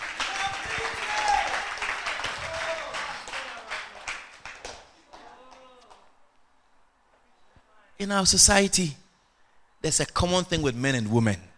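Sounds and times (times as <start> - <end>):
audience clapping: 0.0 - 6.1
speech: 8.0 - 9.0, 9.8 - 11.5.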